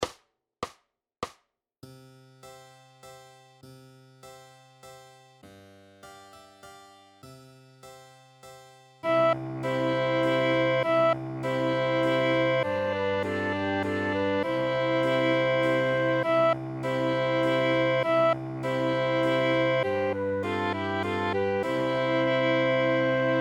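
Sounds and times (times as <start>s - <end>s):
violin minuet: 9.0s - 23.4s.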